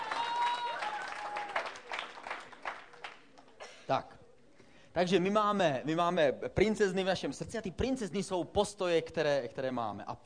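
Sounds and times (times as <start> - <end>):
group applauding: 0.0 - 3.7
speech: 3.9 - 4.2, 5.0 - 10.2.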